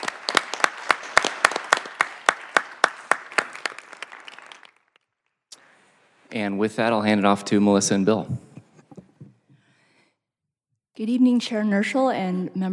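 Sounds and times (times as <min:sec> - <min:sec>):
small group applauding: 0:00.0 - 0:05.1
speech: 0:06.3 - 0:08.5, 0:11.0 - 0:12.7.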